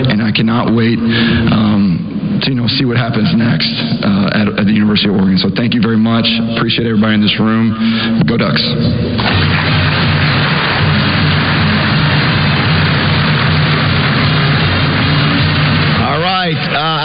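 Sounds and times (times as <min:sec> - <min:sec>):
speech: 0:00.3 - 0:10.2
audience applause: 0:09.2 - 0:17.0.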